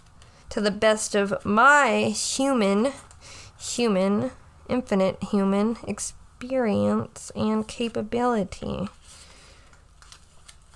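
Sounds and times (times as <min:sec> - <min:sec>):
low steady hum: 0:00.0 - 0:10.7
speech: 0:00.5 - 0:09.2
tarot cards being shuffled: 0:08.8 - 0:10.7.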